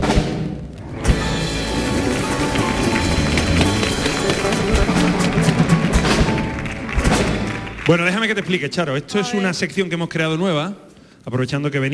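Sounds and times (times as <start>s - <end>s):
audience applause: 1.2s - 9.5s
speech: 7.9s - 11.9s.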